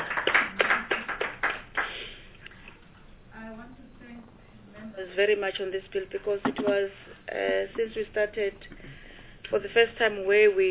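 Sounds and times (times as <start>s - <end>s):
round of applause: 0.0s - 2.2s
speech: 5.2s - 8.8s, 9.5s - 10.6s.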